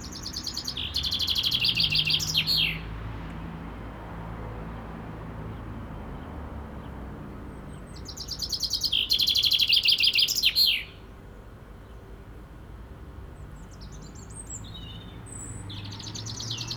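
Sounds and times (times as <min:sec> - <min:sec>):
birds: 0:00.0 - 0:03.4, 0:05.5 - 0:11.2, 0:13.3 - 0:16.7
cars: 0:00.0 - 0:08.4, 0:13.2 - 0:16.7.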